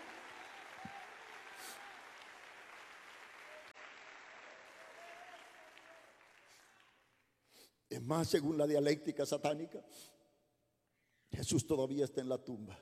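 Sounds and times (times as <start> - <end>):
large gathering applauding: 0.0 - 7.2
speech: 7.9 - 10.2, 11.4 - 12.8.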